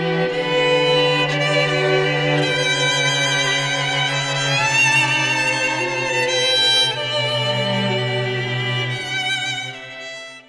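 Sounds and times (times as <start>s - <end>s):
string quartet playing: 0.0s - 10.4s.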